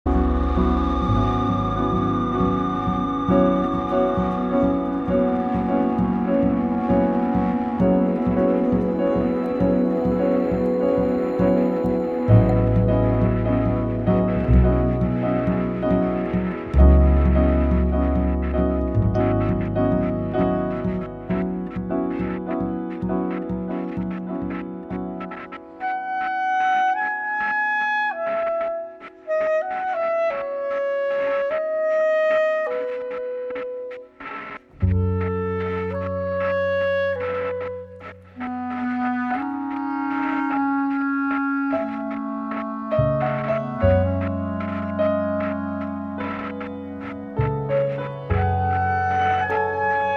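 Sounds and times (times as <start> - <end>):
piano: 0.0 - 50.1.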